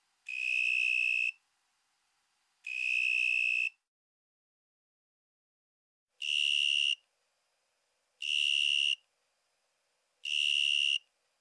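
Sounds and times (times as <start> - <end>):
narrow-winged tree cricket trilling: 0.3 - 1.4, 2.7 - 3.8, 6.2 - 7.0, 8.2 - 9.0, 10.3 - 11.1.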